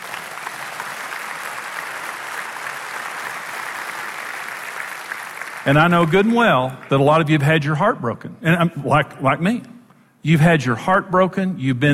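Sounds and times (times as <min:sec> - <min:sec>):
crowd clapping: 0:00.0 - 0:07.4
speech: 0:05.6 - 0:11.9.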